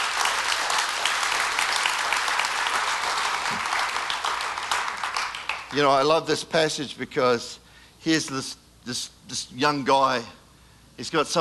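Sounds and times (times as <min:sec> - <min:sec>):
people clapping: 0:00.0 - 0:06.2
speech: 0:05.7 - 0:10.4, 0:11.0 - 0:11.4.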